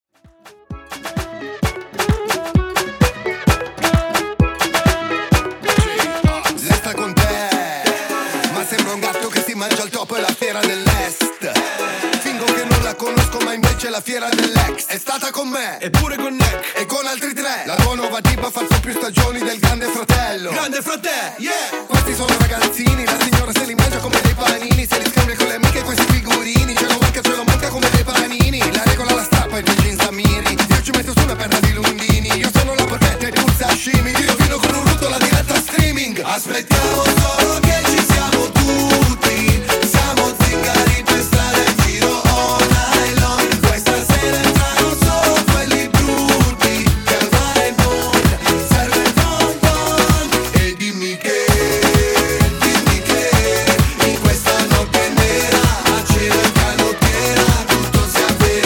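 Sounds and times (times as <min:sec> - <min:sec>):
clean salsa afrobeat music: 0:00.1 - 0:58.6.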